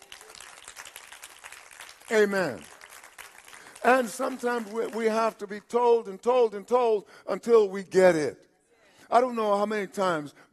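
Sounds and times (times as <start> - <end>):
audience applauding: 0.0 - 5.7
speech: 2.1 - 2.7, 3.8 - 8.4, 9.1 - 10.5.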